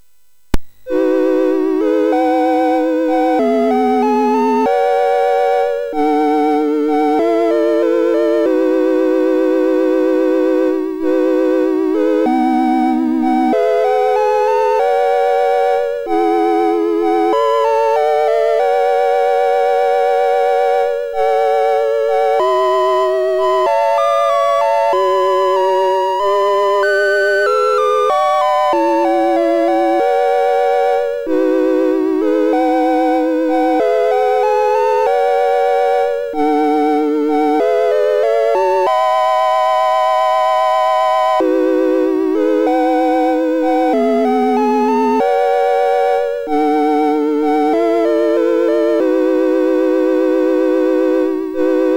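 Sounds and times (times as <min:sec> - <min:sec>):
MOS6581R3 SID chip sound: 0:00.5 - 0:51.9.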